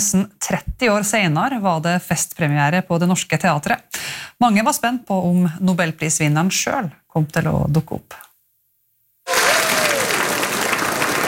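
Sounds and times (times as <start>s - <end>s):
speech: 0.1s - 8.2s
audience applause in theatre hall: 9.3s - 11.2s.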